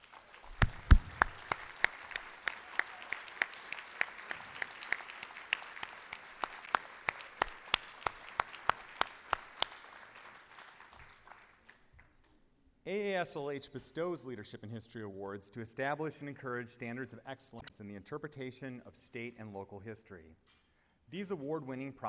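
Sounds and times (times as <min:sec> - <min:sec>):
audience applause: 0:00.0 - 0:11.8
speech: 0:12.9 - 0:22.0.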